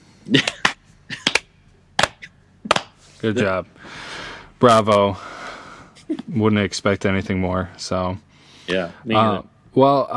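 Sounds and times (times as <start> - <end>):
speech: 0.3 - 0.5, 3.2 - 5.4, 6.1 - 10.1
sarcastic slow clap: 0.4 - 3.0.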